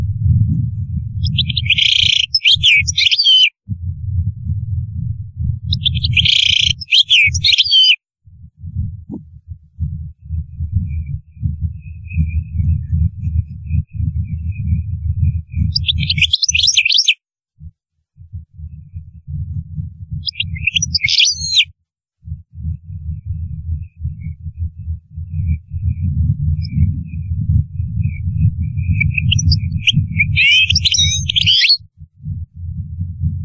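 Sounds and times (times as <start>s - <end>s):
low rumbling noise: 0.0s - 2.3s, 3.7s - 6.8s, 8.2s - 16.0s, 17.6s - 20.8s, 22.2s - 30.5s, 32.0s - 33.4s
European goldfinch song: 1.2s - 3.5s, 5.7s - 8.0s, 15.7s - 17.2s, 20.2s - 21.6s, 29.0s - 31.8s.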